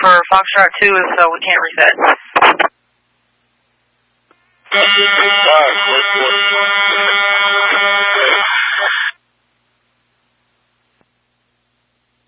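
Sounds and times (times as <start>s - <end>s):
speech: 0.1s - 2.7s, 4.7s - 7.9s
alarm blaring: 4.7s - 9.2s.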